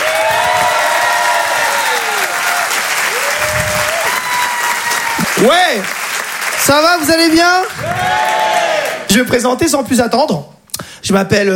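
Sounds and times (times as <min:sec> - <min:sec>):
audience applause: 0:00.0 - 0:09.2
speech: 0:05.4 - 0:06.0, 0:06.6 - 0:07.9, 0:09.1 - 0:11.5.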